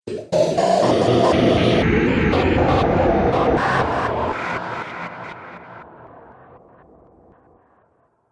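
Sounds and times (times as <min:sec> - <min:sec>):
ghostly glitchy electronic sound: 0:00.1 - 0:05.9.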